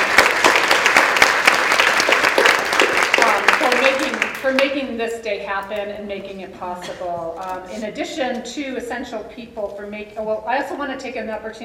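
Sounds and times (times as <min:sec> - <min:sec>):
audience applause at an academic event: 0:00.0 - 0:04.4
speech: 0:04.4 - 0:11.6.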